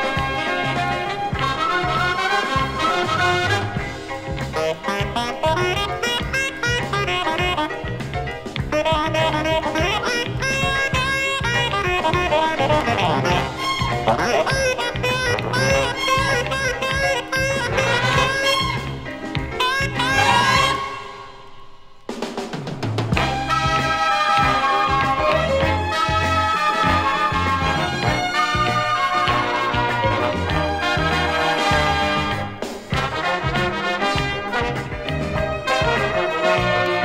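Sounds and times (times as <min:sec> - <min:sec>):
disco, funk and jazz music: 0:00.0 - 0:37.0.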